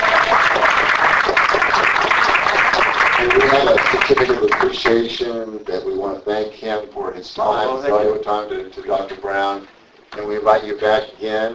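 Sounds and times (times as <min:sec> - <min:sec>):
audience applause: 0:00.0 - 0:05.1
speech: 0:03.6 - 0:11.5.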